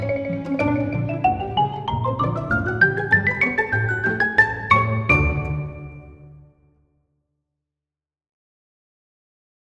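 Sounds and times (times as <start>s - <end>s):
xylophone: 0.0s - 6.2s.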